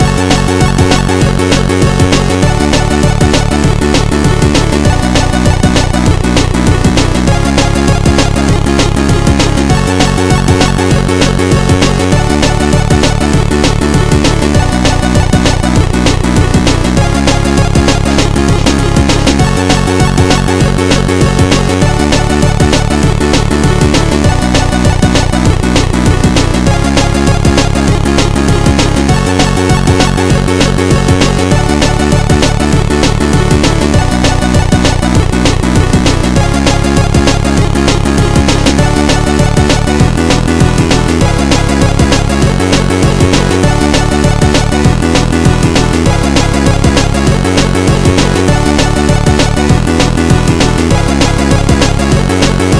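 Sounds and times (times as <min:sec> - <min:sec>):
chiptune music: 0:00.0 - 0:52.7.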